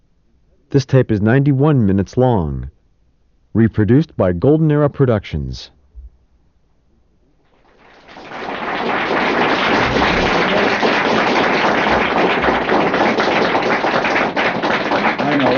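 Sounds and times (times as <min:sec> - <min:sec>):
speech: 0:00.7 - 0:02.8, 0:03.6 - 0:05.8
crowd applauding: 0:07.6 - 0:15.5.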